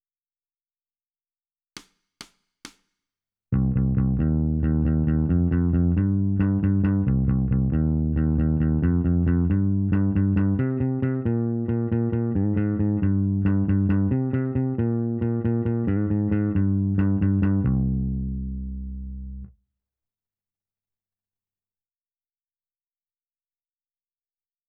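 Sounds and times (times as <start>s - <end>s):
bass: 3.5s - 19.6s.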